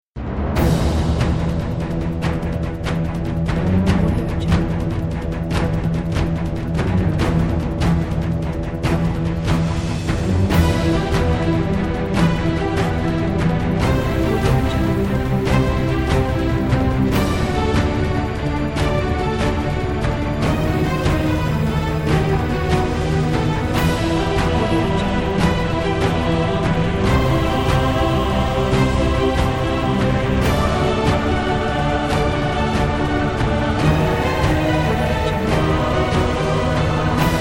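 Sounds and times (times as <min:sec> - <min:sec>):
epic sports intro music: 0:00.2 - 0:37.3.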